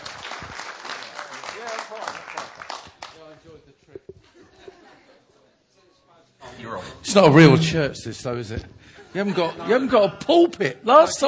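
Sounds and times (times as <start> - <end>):
audience applause welcoming a speaker: 0.0 - 3.3
laughter: 3.8 - 5.4, 9.0 - 10.5
speech: 6.6 - 11.2.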